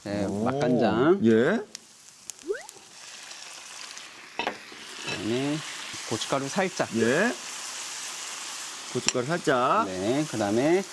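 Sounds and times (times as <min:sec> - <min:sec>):
speech: 0:00.0 - 0:01.8, 0:05.2 - 0:07.4, 0:08.9 - 0:10.9
ingredients stir-fried in a pan: 0:00.0 - 0:10.9.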